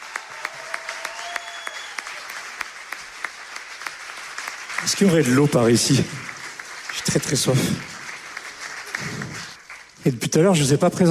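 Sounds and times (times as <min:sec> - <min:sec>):
audience applause: 0:00.0 - 0:10.7
speech: 0:04.8 - 0:06.3, 0:07.1 - 0:07.9, 0:10.1 - 0:11.0.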